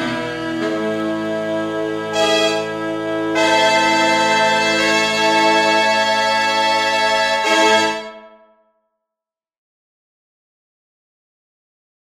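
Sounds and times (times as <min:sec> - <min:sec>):
octave saxophone: 0:00.0 - 0:08.4.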